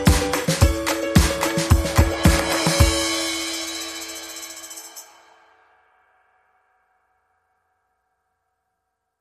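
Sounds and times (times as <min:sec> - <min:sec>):
ukulele: 0:00.0 - 0:03.6
drums: 0:00.0 - 0:05.2.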